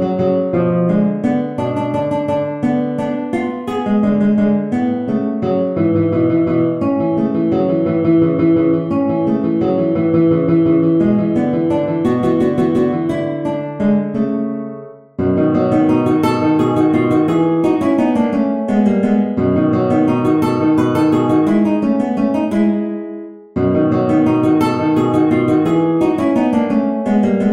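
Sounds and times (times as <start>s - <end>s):
guitar playing a waltz: 0.0s - 27.5s.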